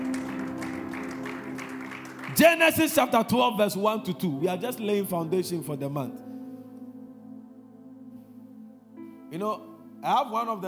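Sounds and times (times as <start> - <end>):
audience clapping: 0.0 - 3.1
speech: 2.4 - 6.3, 9.3 - 10.6.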